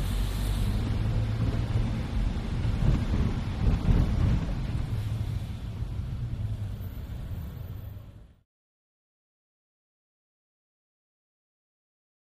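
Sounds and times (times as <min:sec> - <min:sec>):
car driving heard from the interior: 0:00.0 - 0:08.4
wet traffic: 0:00.0 - 0:08.4.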